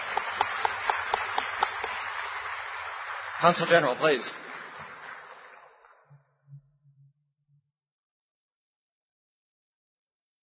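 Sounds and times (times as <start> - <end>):
audience applause: 0.0 - 6.2
speech: 3.4 - 4.4.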